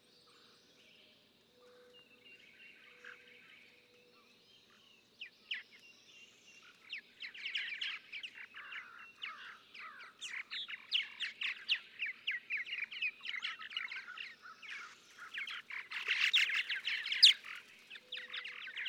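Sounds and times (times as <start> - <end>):
purple martins chattering: 7.6 - 18.8.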